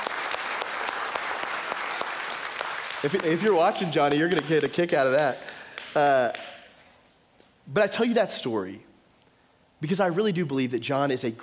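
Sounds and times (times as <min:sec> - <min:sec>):
audience clapping: 0:00.0 - 0:06.9
speech: 0:03.0 - 0:06.4, 0:07.7 - 0:08.9, 0:09.8 - 0:11.4.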